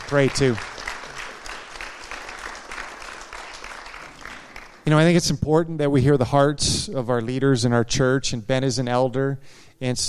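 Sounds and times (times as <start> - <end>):
audience applause: 0.0 - 4.9
speech: 0.1 - 0.7, 4.9 - 10.0.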